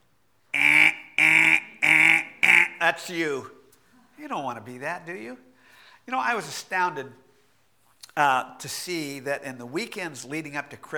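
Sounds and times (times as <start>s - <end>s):
voice imitating a car alarm: 0.6s - 3.0s
speech: 2.8s - 3.6s, 4.2s - 5.5s, 6.1s - 7.2s, 8.2s - 10.9s.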